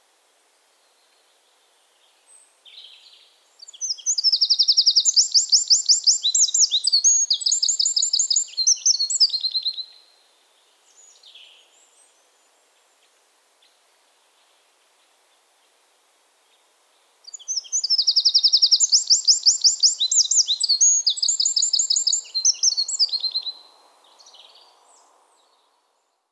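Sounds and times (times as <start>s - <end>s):
Eurasian wren singing: 3.6s - 9.9s, 17.2s - 25.6s.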